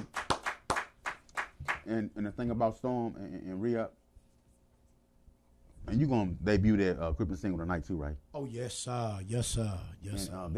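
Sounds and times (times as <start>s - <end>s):
hands clapping to welcome a guest: 0.0s - 1.9s
speech: 1.9s - 4.0s, 5.9s - 10.5s.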